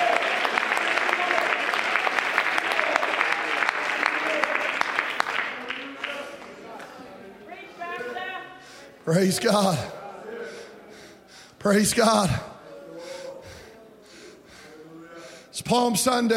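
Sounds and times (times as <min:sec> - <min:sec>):
audience clapping hands: 0:00.0 - 0:07.0
speech: 0:09.1 - 0:10.0, 0:11.6 - 0:12.5, 0:15.7 - 0:16.3.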